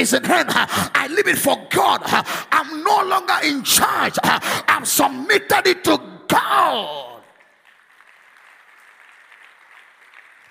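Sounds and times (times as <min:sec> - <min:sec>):
speech: 0:00.0 - 0:07.2
crowd applause: 0:07.3 - 0:10.4.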